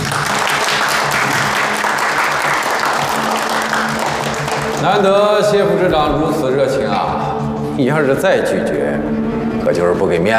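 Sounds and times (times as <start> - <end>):
audience applause: 0.0 - 5.1
speech: 4.8 - 10.3.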